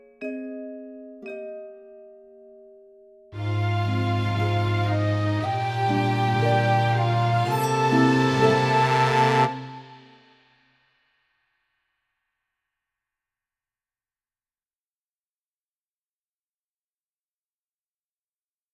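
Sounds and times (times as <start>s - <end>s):
instrumental film music: 0.0s - 10.5s.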